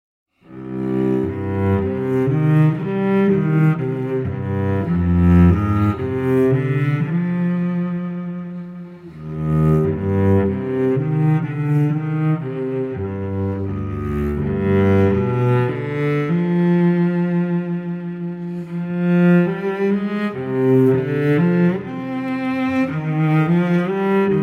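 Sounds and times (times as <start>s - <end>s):
cello lament: 0.4s - 24.4s.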